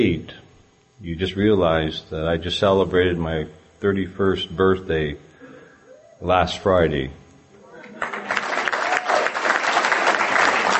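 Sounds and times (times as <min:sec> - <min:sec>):
speech: 0:00.0 - 0:00.4, 0:01.0 - 0:05.3, 0:06.2 - 0:07.2
audience applause: 0:07.8 - 0:10.7.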